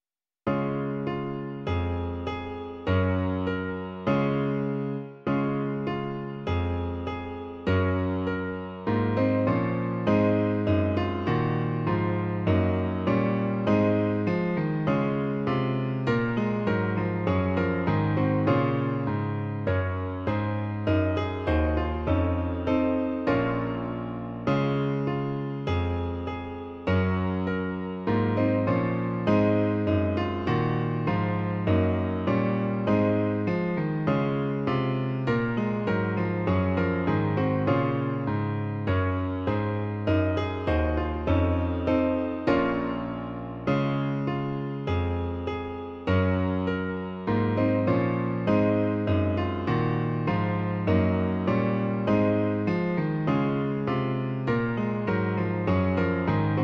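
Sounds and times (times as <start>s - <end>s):
piano: 0.0s - 56.6s.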